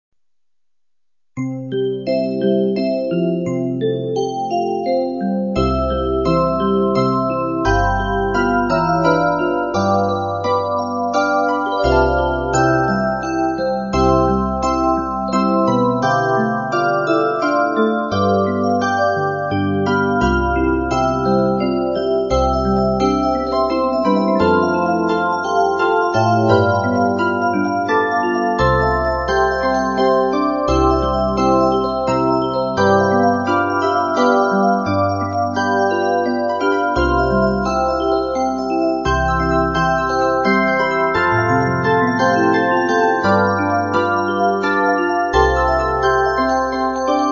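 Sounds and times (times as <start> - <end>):
Polish lullaby: 1.4 - 47.3.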